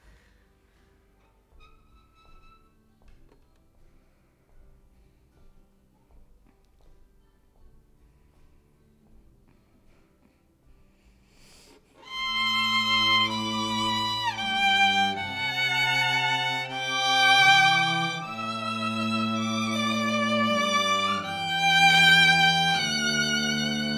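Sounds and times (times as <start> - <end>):
violin: 12.0 - 23.9.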